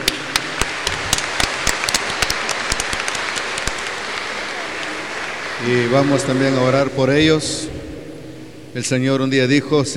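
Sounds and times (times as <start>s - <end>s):
audience applause for the children: 0.0s - 7.2s
speech: 5.6s - 7.8s, 8.7s - 9.9s.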